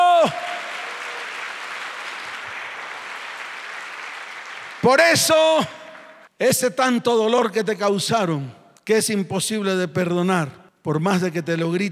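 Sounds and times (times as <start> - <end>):
audience applauding: 0.0 - 6.3
speech: 0.2 - 0.4, 4.8 - 5.8, 6.4 - 11.9.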